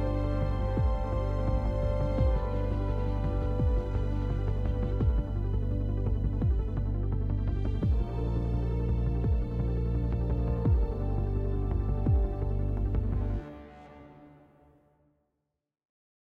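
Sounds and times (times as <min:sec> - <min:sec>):
music loop: 0:00.0 - 0:06.9, 0:07.8 - 0:12.8.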